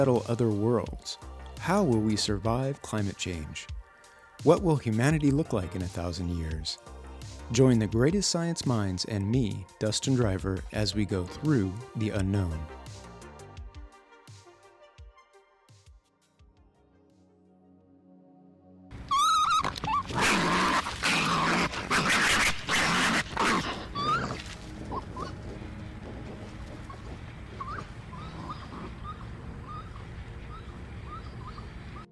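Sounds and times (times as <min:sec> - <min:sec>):
speech: 0:00.0 - 0:03.8, 0:04.4 - 0:12.8
raccoon shrieking: 0:19.0 - 0:25.4, 0:26.8 - 0:32.1.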